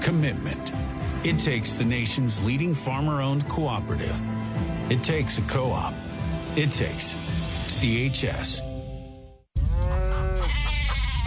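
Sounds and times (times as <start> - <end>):
speech: 0.1 - 8.7
farm animals bleating in alarm: 9.6 - 11.2.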